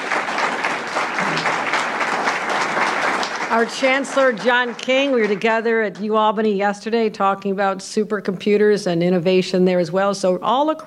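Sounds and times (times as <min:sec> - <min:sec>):
audience applause: 0:00.0 - 0:05.6
speech: 0:03.5 - 0:10.8.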